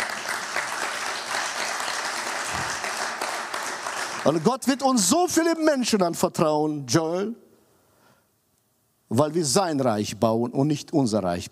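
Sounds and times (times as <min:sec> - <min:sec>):
applause: 0:00.0 - 0:05.1
speech: 0:04.2 - 0:07.4, 0:09.1 - 0:11.4.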